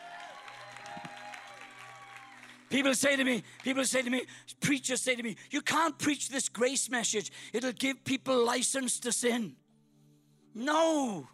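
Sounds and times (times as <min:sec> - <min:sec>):
audience clapping: 0:00.0 - 0:04.2
speech: 0:02.7 - 0:09.6, 0:10.6 - 0:11.3.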